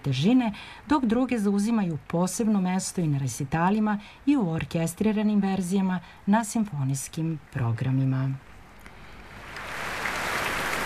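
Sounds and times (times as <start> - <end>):
speech: 0.0 - 8.5
audience applause at the Royal Albert Hall awaiting an encore: 9.8 - 10.8.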